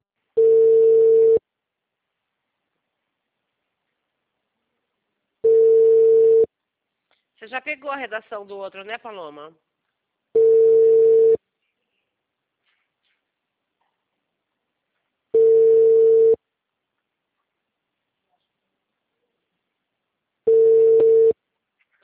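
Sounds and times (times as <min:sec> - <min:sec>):
telephone ringback tone on an unanswered outgoing call to a client: 0:00.4 - 0:01.4, 0:05.4 - 0:06.5, 0:10.4 - 0:11.4, 0:15.4 - 0:16.4, 0:20.5 - 0:21.4
speech: 0:07.4 - 0:09.7.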